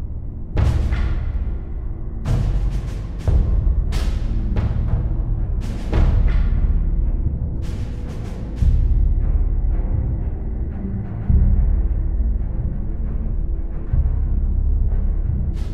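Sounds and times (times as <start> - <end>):
music ambience: 0.0 - 15.7.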